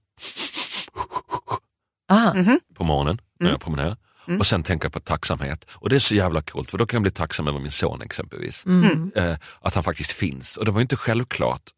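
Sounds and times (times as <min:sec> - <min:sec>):
panting breath: 0:00.4 - 0:01.6
speech: 0:02.1 - 0:11.7.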